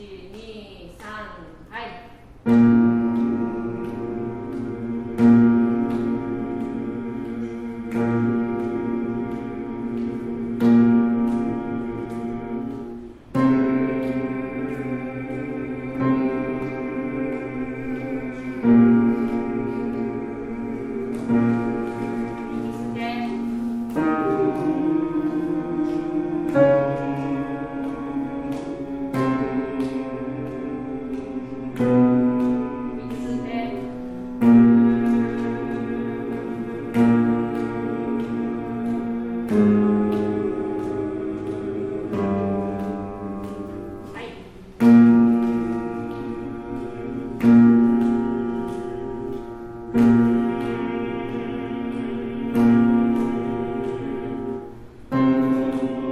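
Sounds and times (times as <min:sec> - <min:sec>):
male choir bass voices: 0:02.5 - 0:56.1.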